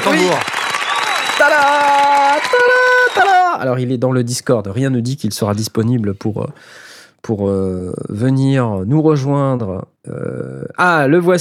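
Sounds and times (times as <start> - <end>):
speech: 0.0 - 0.6, 1.4 - 11.4
applause: 0.0 - 3.6.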